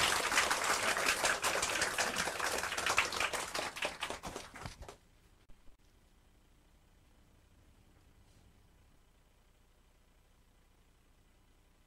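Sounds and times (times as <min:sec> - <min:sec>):
crowd applauding: 0:00.0 - 0:05.0.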